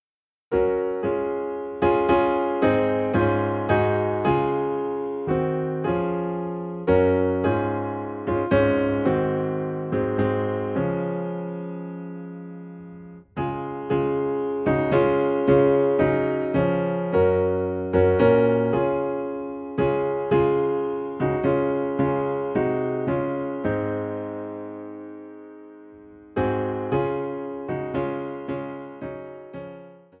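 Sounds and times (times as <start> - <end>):
piano piece in D flat: 0.5 - 30.1.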